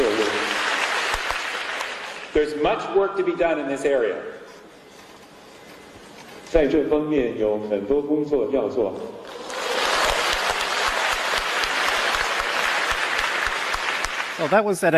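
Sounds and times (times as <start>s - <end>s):
spontaneous academic conference audience applause: 0.0s - 2.3s, 9.3s - 14.8s
speech: 2.4s - 4.4s, 6.5s - 9.2s, 14.4s - 14.9s.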